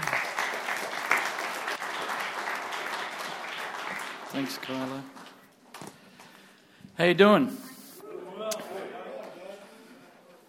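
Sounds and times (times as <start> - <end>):
audience applause welcoming a guest speaker to the stage: 0.0 - 5.4
speech: 4.3 - 5.2, 7.0 - 7.6.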